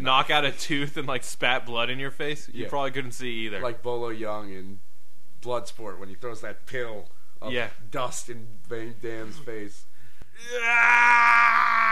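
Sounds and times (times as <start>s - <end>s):
speech: 0.0s - 11.9s
voice imitating a slow-motion movie scream: 10.4s - 11.9s.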